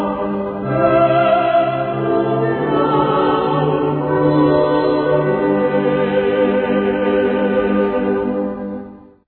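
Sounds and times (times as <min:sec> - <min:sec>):
soloists singing in chorus: 0:00.0 - 0:08.1.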